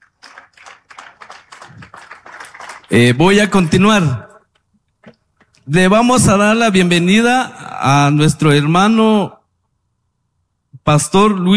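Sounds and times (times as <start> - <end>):
audience applause: 0.0 - 4.1
speech: 2.9 - 4.3, 5.7 - 9.4, 10.9 - 11.5.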